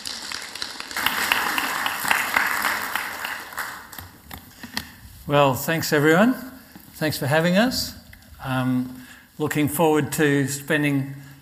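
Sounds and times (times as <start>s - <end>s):
audience applause welcoming a pastor to the platform: 0.0s - 4.1s
speech: 5.3s - 11.2s.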